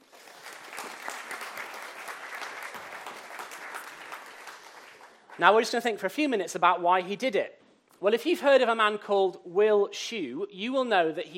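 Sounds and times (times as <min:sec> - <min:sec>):
audience clapping: 0:00.0 - 0:05.7
speech: 0:05.4 - 0:11.3.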